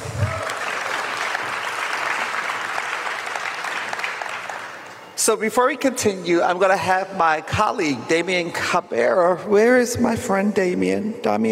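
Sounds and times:
audience applause: 0:00.0 - 0:05.1
speech: 0:05.2 - 0:11.4.

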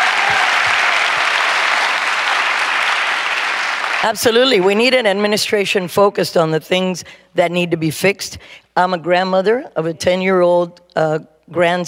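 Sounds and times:
audience applause: 0:00.0 - 0:04.3
speech: 0:04.0 - 0:11.8.

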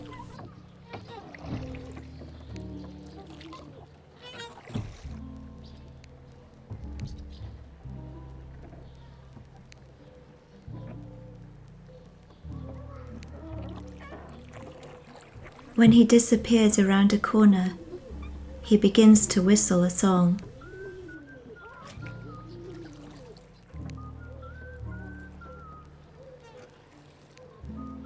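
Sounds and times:
gondola oar splashing water: 0:00.0 - 0:00.4, 0:04.4 - 0:05.1, 0:13.9 - 0:21.2
voices murmuring: 0:00.0 - 0:00.4, 0:15.7 - 0:21.2
speech: 0:15.8 - 0:17.8, 0:18.7 - 0:20.5.

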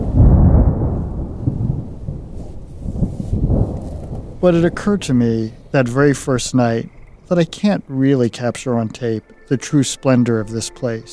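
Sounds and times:
thunder: 0:00.0 - 0:05.7
speech: 0:04.4 - 0:11.1.

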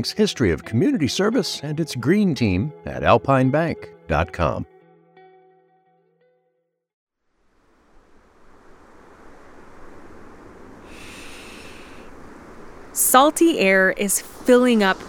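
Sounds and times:
soft tonal music: 0:00.0 - 0:04.6
speech: 0:00.0 - 0:04.7, 0:13.1 - 0:15.0
ocean waves hitting the sand on a Southern California beach: 0:07.3 - 0:15.0.

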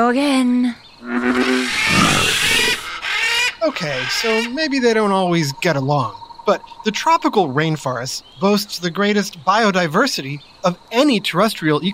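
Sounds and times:
speech: 0:00.0 - 0:02.0, 0:03.6 - 0:11.9
frog croaking: 0:01.0 - 0:08.4.

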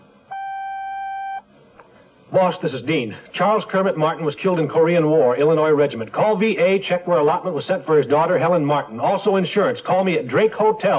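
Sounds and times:
low hiss: 0:00.0 - 0:10.9
answering machine beep: 0:00.3 - 0:01.4
speech: 0:02.4 - 0:10.9.

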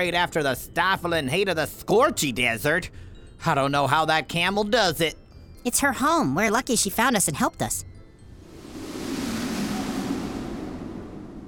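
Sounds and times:
speech: 0:00.0 - 0:07.9
wind picking up around a hot air balloon in flight: 0:08.3 - 0:11.4.

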